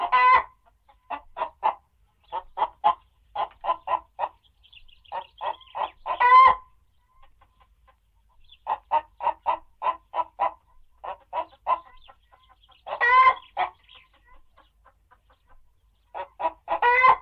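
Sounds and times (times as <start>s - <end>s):
chickens clucking: 0.0s - 17.2s.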